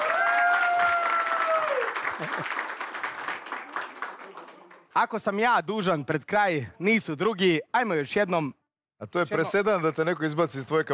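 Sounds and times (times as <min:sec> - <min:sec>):
audience clapping for the evening's show: 0:00.0 - 0:05.2
speech: 0:02.2 - 0:02.7, 0:05.0 - 0:10.9.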